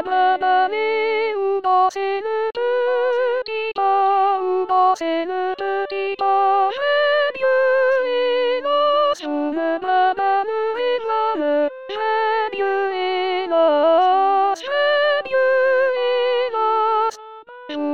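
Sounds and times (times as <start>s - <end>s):
soprano singing: 0.0s - 17.9s.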